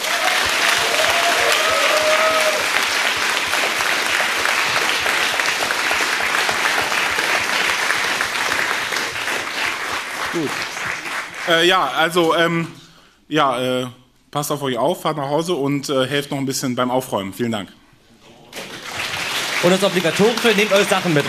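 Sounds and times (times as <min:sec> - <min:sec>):
faint whistles and cheers: 0:00.0 - 0:02.7
audience applause: 0:00.0 - 0:11.7, 0:18.6 - 0:21.2
speech: 0:11.5 - 0:17.8, 0:19.6 - 0:21.2.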